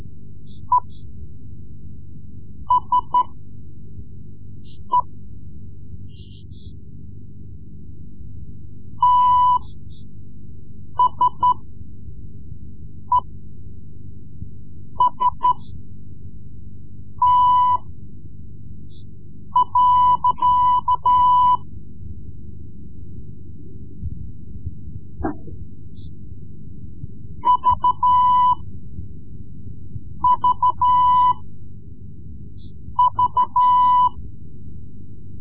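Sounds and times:
Morse code lessons: 2.7 - 3.4, 9.0 - 9.7, 11.0 - 11.7, 15.0 - 15.6, 17.2 - 17.8, 19.6 - 21.7, 27.4 - 28.7, 30.2 - 31.5, 33.0 - 34.2.

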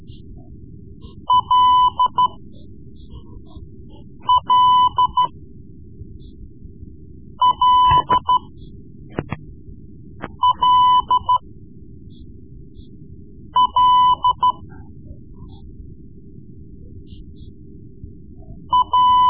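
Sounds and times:
Morse code lessons: 1.1 - 2.4, 4.2 - 5.3, 7.4 - 8.5, 10.2 - 11.4, 13.6 - 14.7, 18.7 - 19.2.

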